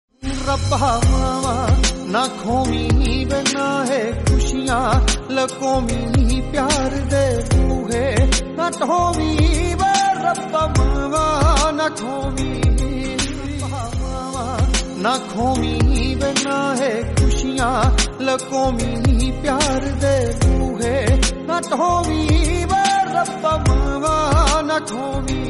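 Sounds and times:
Punjabi song: 0.2 - 25.4.

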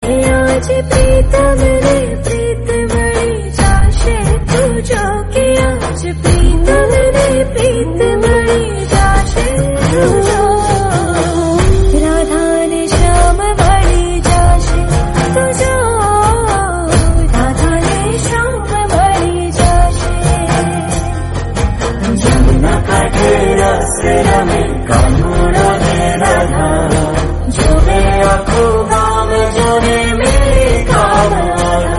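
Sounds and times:
devotional Gujarati song: 0.0 - 31.9.

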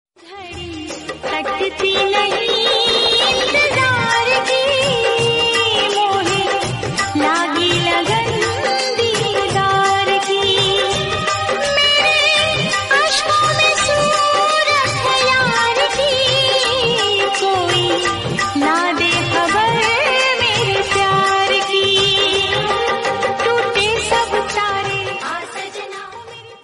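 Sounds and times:
Punjabi love song: 0.2 - 26.6.

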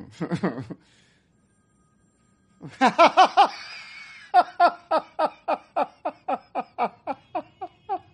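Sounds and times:
the Joker laughing: 0.0 - 0.8, 2.6 - 8.1.

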